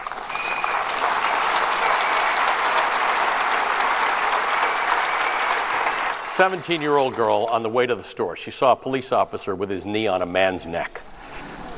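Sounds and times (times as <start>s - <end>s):
audience applause: 0.0s - 7.8s
speech: 6.4s - 11.0s.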